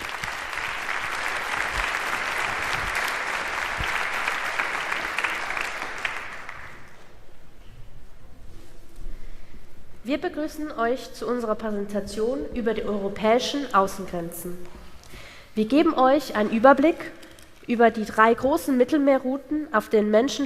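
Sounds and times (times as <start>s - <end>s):
audience applause: 0.0s - 7.0s
speech: 10.1s - 14.8s, 15.6s - 20.4s.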